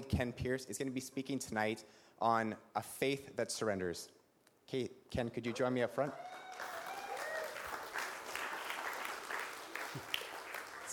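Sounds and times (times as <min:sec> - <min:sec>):
speech: 0:00.1 - 0:06.4
audience applauding and cheering: 0:06.0 - 0:10.9.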